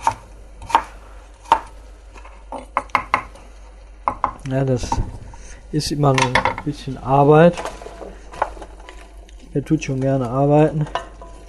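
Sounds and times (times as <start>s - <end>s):
sharp knife chopping carrots into cubes on a cutting board: 0.0s - 1.8s
speech: 4.5s - 7.8s, 9.5s - 11.0s.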